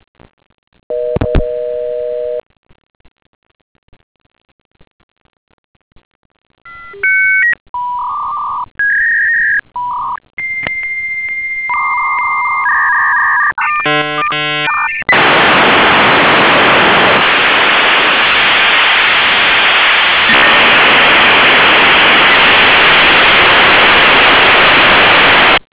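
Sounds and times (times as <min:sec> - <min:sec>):
modem: 0:00.9 - 0:01.6, 0:06.7 - 0:25.6.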